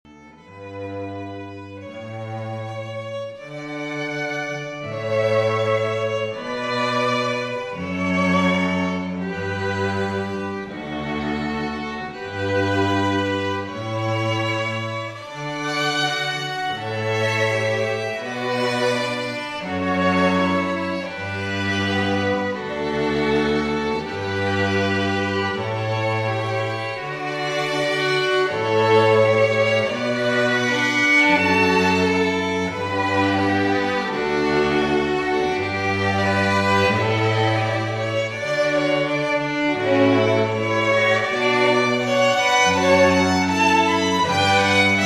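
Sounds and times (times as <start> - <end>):
string quartet playing: 0.0 - 45.0.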